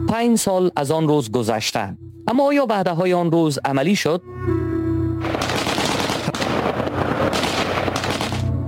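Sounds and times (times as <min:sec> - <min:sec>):
speech: 0:00.1 - 0:04.7
gunfire: 0:05.2 - 0:08.5.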